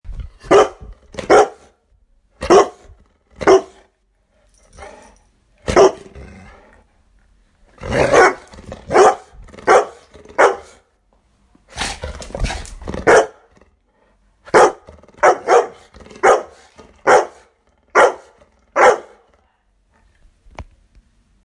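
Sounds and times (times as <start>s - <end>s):
dog: 0.4s - 1.7s, 2.4s - 3.9s, 8.1s - 10.8s, 11.7s - 13.6s, 14.5s - 19.3s.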